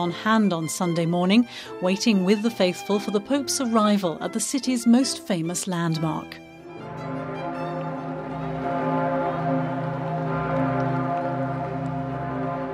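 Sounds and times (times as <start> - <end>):
speech: 0.0 - 6.5
great cathedral bell tolling: 6.7 - 12.7.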